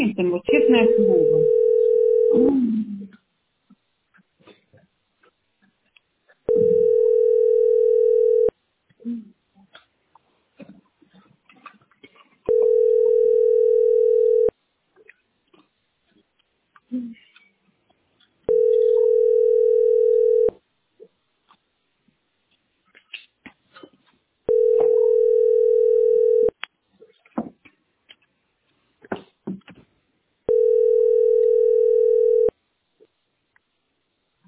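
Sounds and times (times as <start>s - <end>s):
faint scattered noises: 0.0s - 34.4s
speech: 0.2s - 1.6s, 2.3s - 2.9s
telephone ringback tone: 0.5s - 2.5s, 6.5s - 8.5s, 12.5s - 14.5s, 18.5s - 20.5s, 24.5s - 26.5s, 30.5s - 32.5s.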